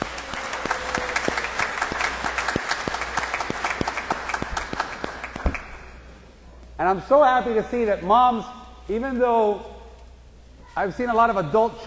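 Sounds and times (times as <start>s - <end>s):
audience round of applause: 0.0s - 5.8s
speech: 6.8s - 9.7s, 10.8s - 11.8s.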